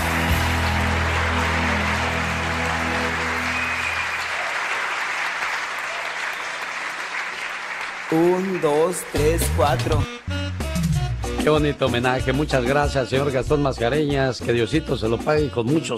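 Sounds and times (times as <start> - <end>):
audience applause: 0.0 - 10.0
speech: 8.1 - 10.2, 11.4 - 15.9.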